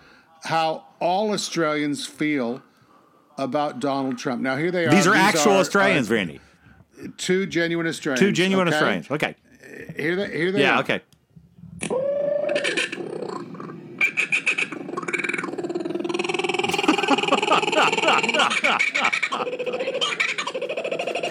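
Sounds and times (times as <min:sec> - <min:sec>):
speech: 0:00.5 - 0:02.7, 0:03.4 - 0:11.2, 0:18.0 - 0:20.6
laughter: 0:04.9 - 0:06.2, 0:16.7 - 0:21.2
people imitating Australian bird calls: 0:11.9 - 0:21.2.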